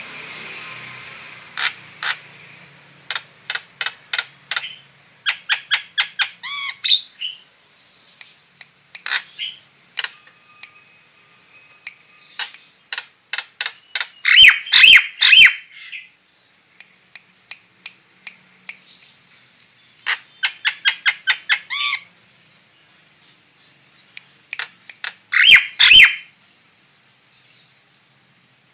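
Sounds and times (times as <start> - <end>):
female starling squeaky down-slurred calls: 1.4 - 7.4, 9.0 - 10.3, 12.2 - 16.1, 19.8 - 22.5, 24.6 - 26.3.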